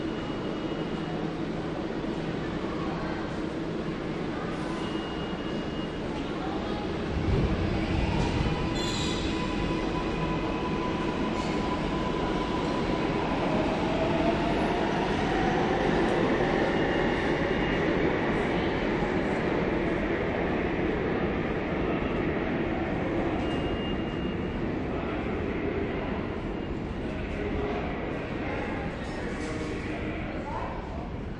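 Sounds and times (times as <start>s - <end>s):
subway train arriving and departing at an underground station: 0.0s - 31.3s
few people talking in an underground subway station: 0.4s - 31.3s.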